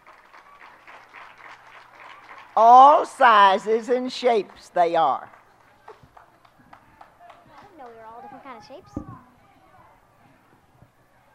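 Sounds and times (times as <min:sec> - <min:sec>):
audience clapping a mountain-music band onto the stage: 0:00.0 - 0:03.4, 0:04.4 - 0:08.7
speech: 0:02.6 - 0:05.4.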